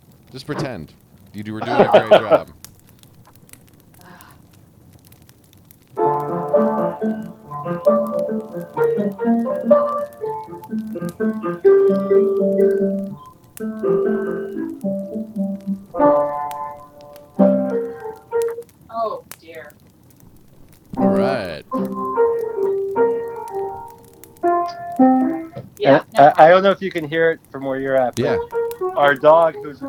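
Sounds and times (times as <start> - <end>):
speech: 0.3 - 2.6, 7.0 - 16.4, 25.8 - 29.8
laughter: 1.6 - 2.5
piano playing: 6.0 - 18.6, 21.0 - 26.2, 27.8 - 29.8.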